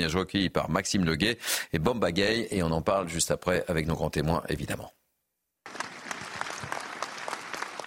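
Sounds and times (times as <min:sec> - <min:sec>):
speech: 0:00.0 - 0:05.0
applause at a support rally: 0:05.6 - 0:07.8.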